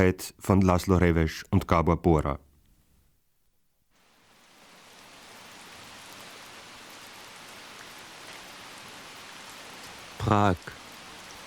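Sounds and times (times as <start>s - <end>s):
speech: 0.0s - 2.5s, 10.2s - 10.8s
rain on a late evening: 3.8s - 11.4s.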